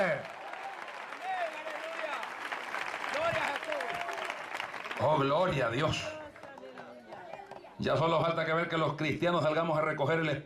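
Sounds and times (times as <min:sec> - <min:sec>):
audience applauding: 0:00.0 - 0:07.5
speech: 0:05.1 - 0:06.2, 0:07.8 - 0:10.4.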